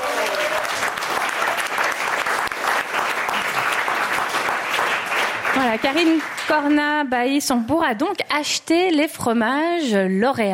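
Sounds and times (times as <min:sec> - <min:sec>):
audience applause: 0:00.0 - 0:07.1
speech: 0:05.7 - 0:10.5.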